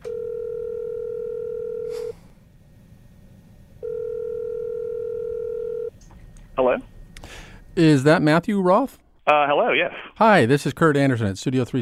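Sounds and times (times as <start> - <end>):
low-pitched telephone dial tone: 0.0 - 1.9, 3.8 - 5.9
speech: 7.8 - 11.7.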